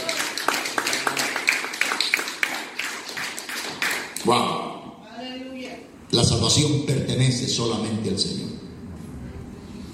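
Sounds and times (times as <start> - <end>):
audience applauding: 0.0 - 4.2
speech: 4.3 - 4.5, 6.3 - 8.7.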